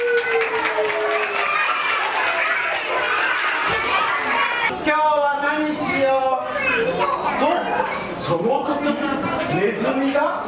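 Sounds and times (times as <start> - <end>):
room full of young children clapping: 0.0 - 4.7
excited children's voices: 0.0 - 9.5.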